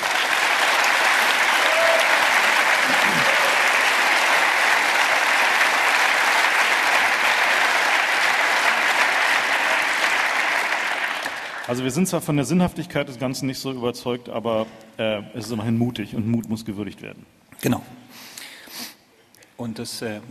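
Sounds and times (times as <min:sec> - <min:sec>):
crowd applauding: 0:00.0 - 0:12.1
speech: 0:11.7 - 0:18.0, 0:19.6 - 0:20.2.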